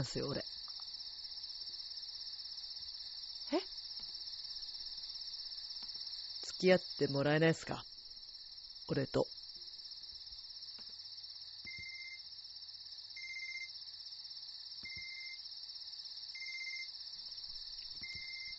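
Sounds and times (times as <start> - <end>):
speech: 0.0 - 0.6, 6.6 - 7.9, 8.9 - 9.4
shrill insect-like buzz: 0.0 - 18.5
phone ringing with short electronic beeps: 11.7 - 12.2, 13.2 - 13.7, 14.8 - 15.4, 16.4 - 16.9, 18.0 - 18.5.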